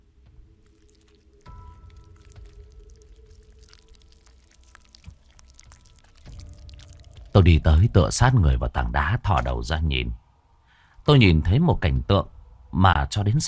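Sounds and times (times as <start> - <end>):
chewing like eating food: 0.3 - 7.4
crunching from behind a rock: 0.4 - 7.8
speech: 7.4 - 10.2, 11.1 - 13.4.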